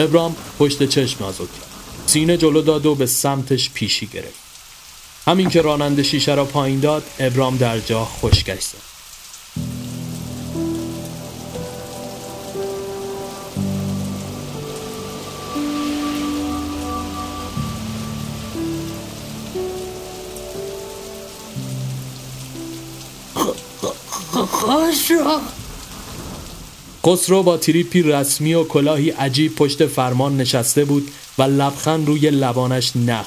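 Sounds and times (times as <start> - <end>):
speech: 0.0 - 4.4, 5.3 - 8.9, 25.2 - 25.6, 27.0 - 33.2
heavy rain pouring: 0.0 - 33.2
low musical tones: 5.3 - 8.7, 9.5 - 25.5.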